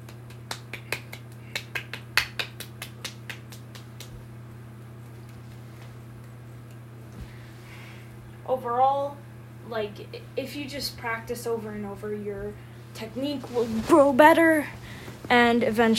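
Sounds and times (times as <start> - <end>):
one-handed clapping: 0.0 - 4.2
speech: 8.5 - 15.9.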